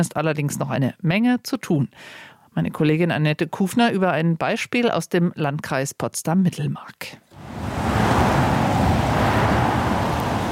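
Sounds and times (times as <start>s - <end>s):
speech: 0.0s - 7.9s
cars driving through a roundabout: 7.4s - 10.5s.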